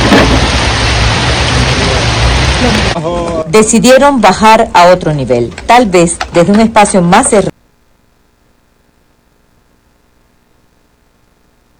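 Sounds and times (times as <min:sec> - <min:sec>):
thunder: 0:00.0 - 0:03.0
heavy rain: 0:00.0 - 0:04.2
speech: 0:02.6 - 0:07.6.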